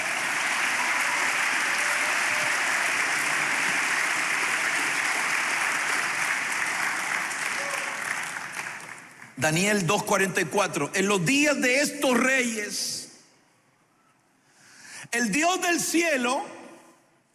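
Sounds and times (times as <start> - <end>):
sustained applause from a large crowd: 0.0 - 9.4
speech: 9.4 - 13.0, 15.2 - 16.6.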